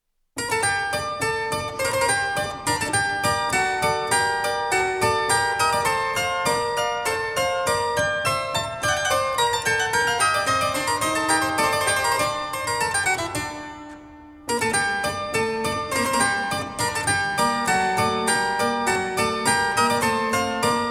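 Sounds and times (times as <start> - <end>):
harpsichord air in G major: 0.4 - 20.8.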